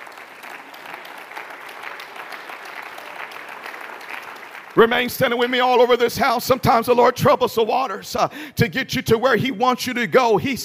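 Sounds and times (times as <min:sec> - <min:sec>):
audience clapping: 0:00.0 - 0:06.1
speech: 0:04.8 - 0:10.6.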